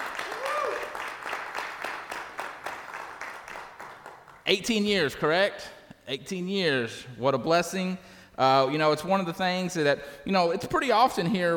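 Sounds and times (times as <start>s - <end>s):
audience clapping: 0.0s - 4.6s
speech: 4.5s - 11.5s.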